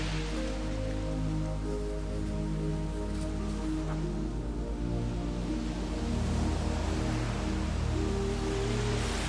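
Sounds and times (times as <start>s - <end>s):
ocean waves on a beach: 0.0s - 9.2s
soft sustained droning tones: 0.0s - 9.2s.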